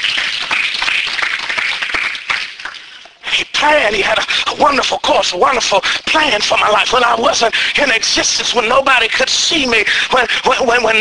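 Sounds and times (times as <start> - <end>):
congregation clapping hands in praise during a church service: 0.0 - 3.2
speech: 3.6 - 11.0.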